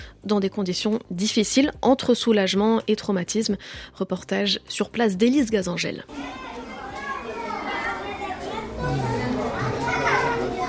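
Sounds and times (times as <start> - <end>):
speech: 0.2 - 6.5
schoolchildren shouting and playing in street: 6.1 - 10.6.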